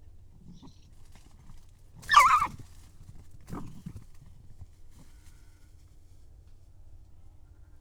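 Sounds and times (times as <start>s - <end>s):
red fox Vulpes vulpes: 2.0s - 2.6s.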